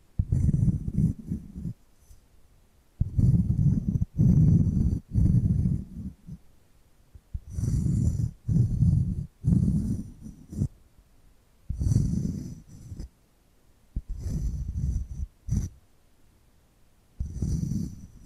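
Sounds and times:
rasping scratching: 0.2s - 1.8s, 3.0s - 6.4s, 7.4s - 10.7s, 11.7s - 13.1s, 14.0s - 15.8s, 17.2s - 18.2s.

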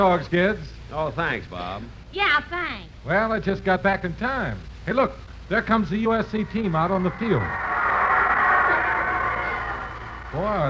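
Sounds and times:
speech: 0.0s - 7.9s, 10.3s - 10.6s
stadium crowd cheering: 5.9s - 10.6s.

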